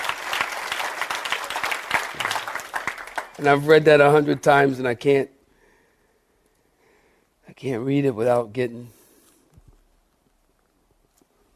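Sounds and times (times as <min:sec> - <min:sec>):
audience clapping hands: 0:00.0 - 0:04.3
speech: 0:03.4 - 0:05.3, 0:07.6 - 0:09.0.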